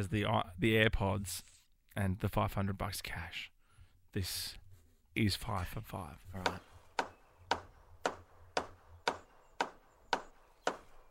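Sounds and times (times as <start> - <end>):
speech: 0.0 - 3.5, 4.1 - 4.6, 5.2 - 6.7
lyrebird mimicking hammer striking: 6.4 - 11.0.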